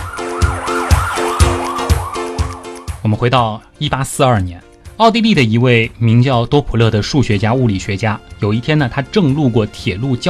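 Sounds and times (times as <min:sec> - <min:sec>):
loud emergency siren wailing in rising-and-falling sweeps: 0:00.0 - 0:03.0
speech: 0:03.1 - 0:10.2.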